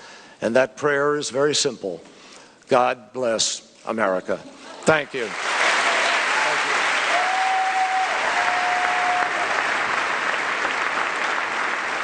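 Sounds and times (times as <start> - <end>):
speech: 0.4 - 5.5
crowd applauding and cheering in hall: 5.1 - 12.0.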